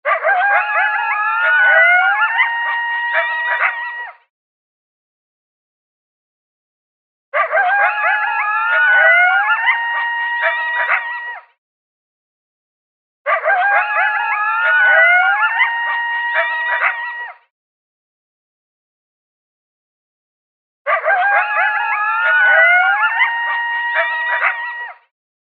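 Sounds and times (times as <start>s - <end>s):
coyotes howling and yipping: 0.0s - 4.2s, 7.4s - 11.5s, 13.3s - 17.5s, 20.9s - 25.1s.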